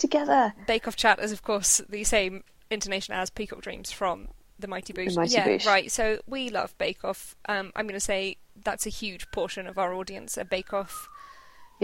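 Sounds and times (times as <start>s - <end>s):
speech: 0.0s - 11.2s
police car siren wailing: 9.0s - 11.8s.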